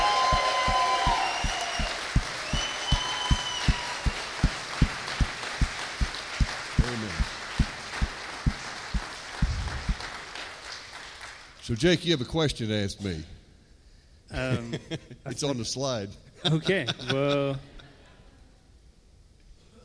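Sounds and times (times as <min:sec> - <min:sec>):
high whoops and cheers: 0:00.0 - 0:04.5
audience clapping in steady unison: 0:00.0 - 0:11.7
speech: 0:11.7 - 0:13.4, 0:14.4 - 0:17.7.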